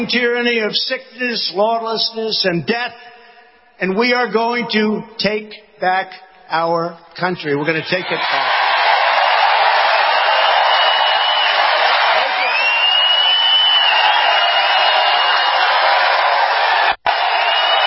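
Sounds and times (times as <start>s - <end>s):
speech: 0.0s - 3.1s, 3.8s - 8.5s
rally crowd applauding and cheering: 8.1s - 17.8s
crowd whoops: 8.9s - 17.8s.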